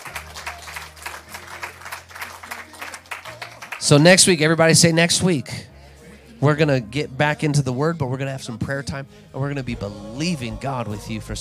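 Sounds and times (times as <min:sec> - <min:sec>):
audience clapping hands: 0:00.0 - 0:04.4
speech: 0:03.8 - 0:05.7, 0:06.4 - 0:11.3.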